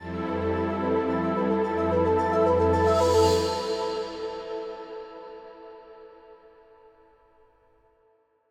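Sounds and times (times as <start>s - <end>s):
cargo ship background music intro: 0.0s - 5.9s.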